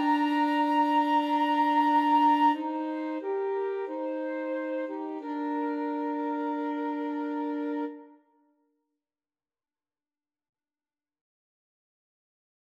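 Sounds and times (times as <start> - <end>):
saxophone playing a slow largo duet: 0.0 - 8.2
flute playing a slow largo duet: 0.0 - 8.3.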